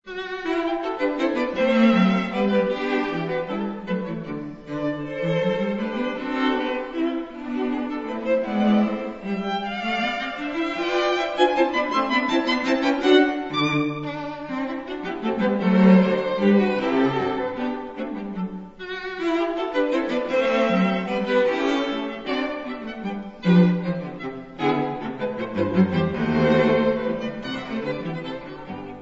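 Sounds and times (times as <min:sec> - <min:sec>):
string quartet: 0:00.0 - 0:29.0.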